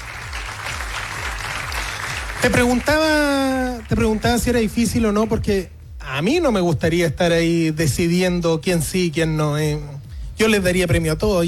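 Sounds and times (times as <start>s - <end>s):
audience applause: 0.0s - 4.4s
low rhythmic pulse: 0.0s - 11.4s
speech: 2.4s - 11.4s.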